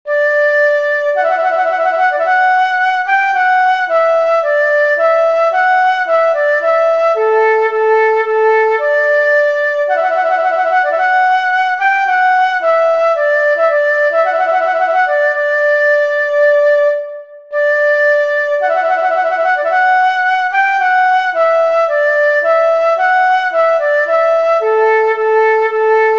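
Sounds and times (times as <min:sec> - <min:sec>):
flute playing: 0:00.1 - 0:26.1.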